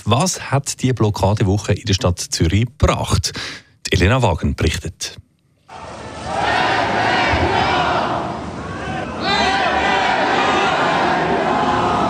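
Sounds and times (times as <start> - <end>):
speech: 0.0 - 5.9
crowd noise: 5.7 - 12.0
protesters chanting at a street blockade: 5.7 - 12.0.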